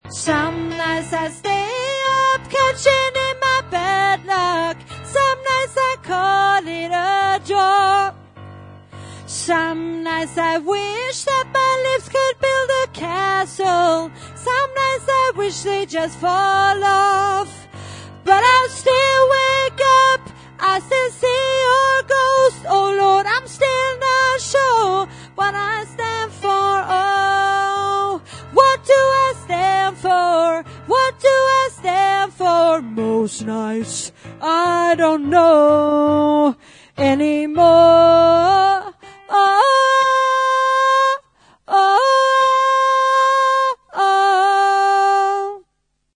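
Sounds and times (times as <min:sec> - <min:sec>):
soprano voice: 0:00.0 - 0:08.2, 0:09.2 - 0:45.8.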